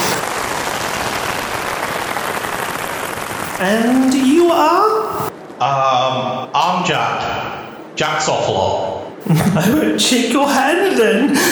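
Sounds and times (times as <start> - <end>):
round of applause: 0.0 - 3.6
speech: 3.6 - 11.4
laughter: 9.2 - 11.4.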